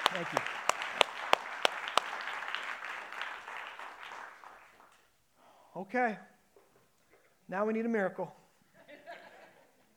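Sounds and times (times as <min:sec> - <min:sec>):
audience round of applause: 0:00.0 - 0:05.0
speech: 0:00.1 - 0:00.6, 0:05.8 - 0:06.3, 0:07.5 - 0:08.4.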